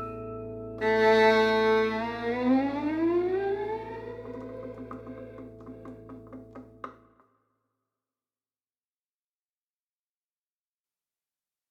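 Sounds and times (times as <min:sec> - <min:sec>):
violin: 0:00.8 - 0:07.0.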